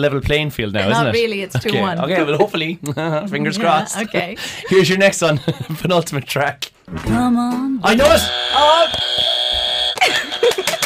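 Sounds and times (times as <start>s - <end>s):
speech: 0.0s - 9.3s
laughter: 2.2s - 6.0s, 10.0s - 10.8s
game show buzzer: 7.9s - 10.8s.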